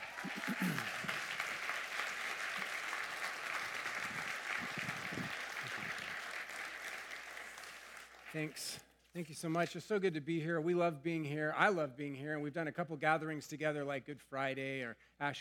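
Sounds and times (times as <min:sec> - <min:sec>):
audience applause at a Sunday church service: 0:00.0 - 0:08.5
speech: 0:08.4 - 0:15.3.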